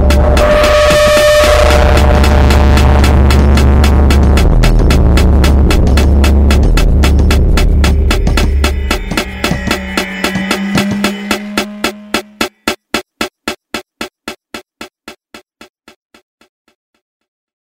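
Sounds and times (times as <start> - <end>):
soundscape: 0.0 - 13.3.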